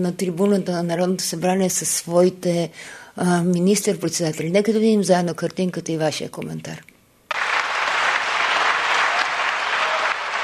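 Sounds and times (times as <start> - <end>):
speech: 0.0 - 6.9
applause from a large group in parliament: 7.3 - 10.4.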